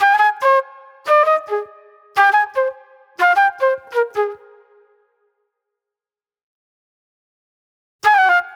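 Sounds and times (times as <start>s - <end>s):
raw funk flute: 0.0s - 4.5s, 8.0s - 8.5s.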